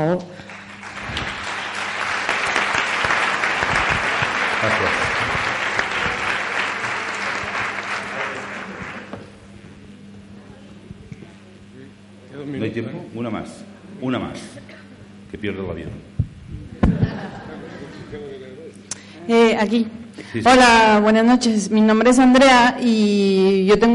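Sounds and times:
speech: 0:00.0 - 0:00.3, 0:13.2 - 0:14.7, 0:15.4 - 0:16.1, 0:19.2 - 0:23.9
audience applause: 0:00.4 - 0:09.4
laughter: 0:02.4 - 0:09.2, 0:16.7 - 0:18.8.

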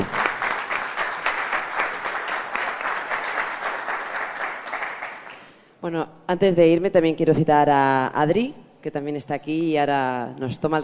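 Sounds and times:
sustained applause from a group: 0:00.0 - 0:05.6
speech: 0:05.9 - 0:10.8.

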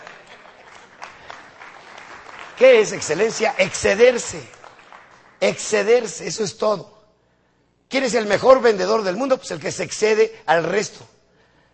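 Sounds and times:
crowd clapping: 0:00.0 - 0:06.3
speech: 0:02.6 - 0:04.6, 0:05.4 - 0:07.0, 0:07.9 - 0:11.2.

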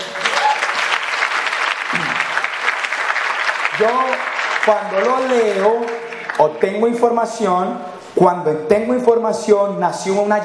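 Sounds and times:
audience applause: 0:00.0 - 0:06.5
speech: 0:03.8 - 0:10.4.

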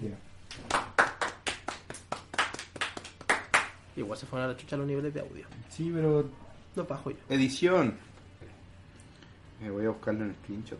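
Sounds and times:
hands clapping: 0:00.5 - 0:03.8
speech: 0:04.0 - 0:08.1, 0:09.6 - 0:10.7.

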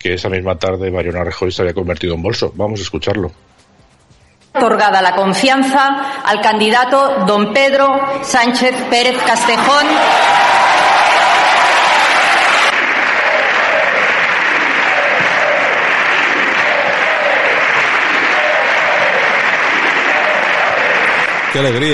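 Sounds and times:
speech: 0:00.0 - 0:03.6, 0:04.5 - 0:10.5, 0:21.6 - 0:21.9
parliament chanting a slogan: 0:09.0 - 0:21.6
parliament applause: 0:09.6 - 0:21.9.

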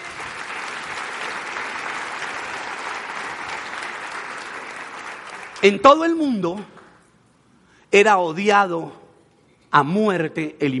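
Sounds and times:
audience applauding: 0:00.0 - 0:06.1
speech: 0:05.6 - 0:06.8, 0:07.9 - 0:09.0, 0:09.7 - 0:10.7.

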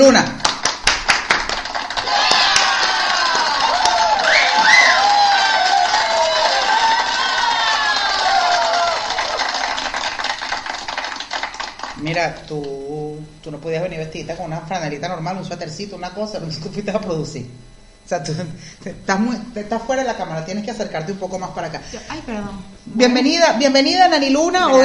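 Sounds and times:
speech: 0:00.0 - 0:00.5, 0:12.2 - 0:24.8
audience applause and cheering: 0:00.6 - 0:12.0.

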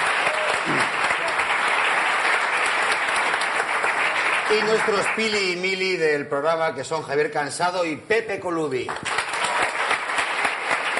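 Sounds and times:
audience applause: 0:00.0 - 0:06.0, 0:08.9 - 0:10.9
speech: 0:04.5 - 0:09.2.

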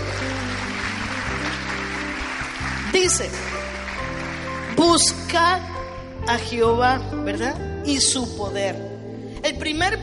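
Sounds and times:
audience applause: 0:00.0 - 0:05.1
speech: 0:03.0 - 0:03.5, 0:04.8 - 0:05.7, 0:06.3 - 0:08.9, 0:09.6 - 0:10.0.

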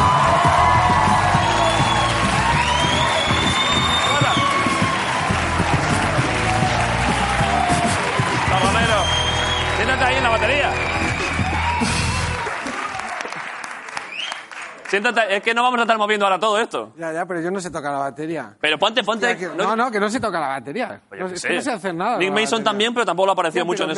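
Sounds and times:
audience applause: 0:00.0 - 0:15.3
speech: 0:14.9 - 0:23.9.

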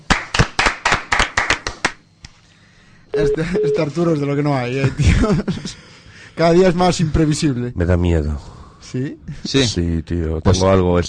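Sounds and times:
applause: 0:00.0 - 0:02.0
speech: 0:03.2 - 0:05.8, 0:06.4 - 0:11.0
laughter: 0:04.8 - 0:05.9.

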